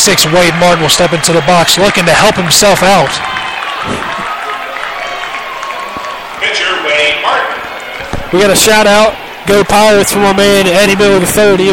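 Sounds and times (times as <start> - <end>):
speech: 0.0 - 4.4, 8.3 - 11.7
baseball fans clapping in stands: 0.0 - 11.7.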